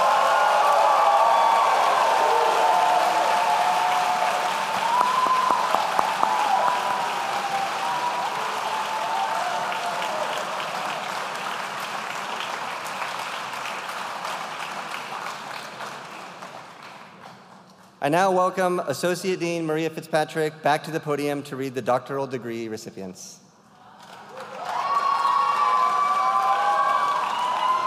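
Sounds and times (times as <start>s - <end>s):
faint cheering: 0.0s - 10.9s, 24.3s - 27.8s
audience applauding for graduates: 0.0s - 17.6s, 23.8s - 27.8s
speech: 18.1s - 23.4s.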